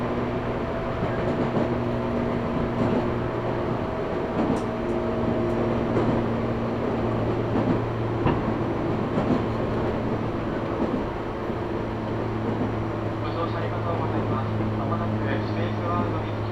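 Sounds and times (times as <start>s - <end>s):
train running on the Kagoshima and Chikuho Main Lines: 0.0s - 16.5s.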